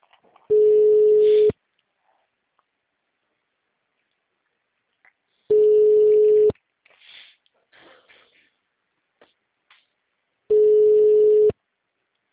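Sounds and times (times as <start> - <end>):
unanswered telephone call ringing tone: 0.5 - 1.5, 5.5 - 6.5, 10.5 - 11.6.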